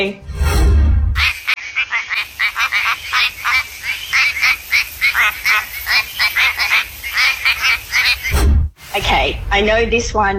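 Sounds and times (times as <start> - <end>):
speech: 0.0 - 0.3, 9.0 - 10.3
quacking frog from WA calling: 1.2 - 8.4.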